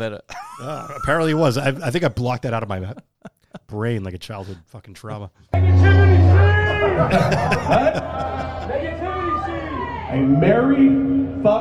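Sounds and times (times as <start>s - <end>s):
speech: 0.0s - 3.1s, 3.7s - 9.0s, 10.1s - 11.6s
laughter: 0.3s - 1.9s, 2.7s - 3.8s, 5.7s - 9.9s
crowd cheering at an outdoor venue: 5.6s - 11.6s.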